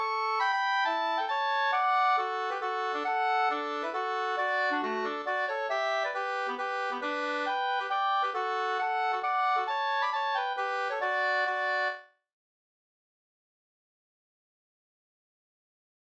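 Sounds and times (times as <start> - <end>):
mazurka music: 0.0 - 12.0.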